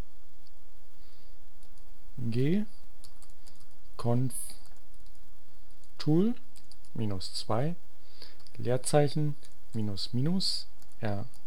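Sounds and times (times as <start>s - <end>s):
speech: 2.2s - 2.8s, 4.0s - 4.6s, 6.0s - 6.4s, 7.0s - 11.4s
typing a command on a computer keyboard in a Linux terminal: 3.0s - 3.8s, 4.6s - 5.2s, 6.5s - 7.0s, 9.4s - 9.9s, 10.8s - 11.4s.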